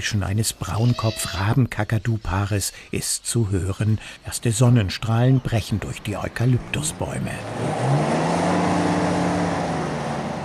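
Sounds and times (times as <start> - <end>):
speech: 0.0 - 8.2
off-road vehicle driving on bumpy red dirt track: 5.6 - 10.4.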